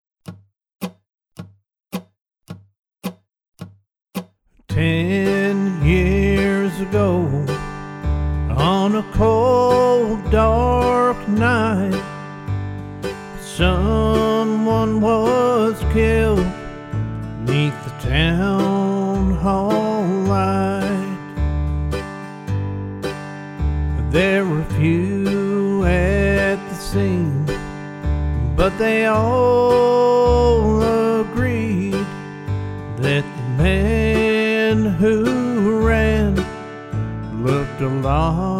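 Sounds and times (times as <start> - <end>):
vocals in the key of G: 4.6 - 12.4, 13.1 - 21.5, 23.9 - 38.5
backing track in the key of G: 4.7 - 38.5.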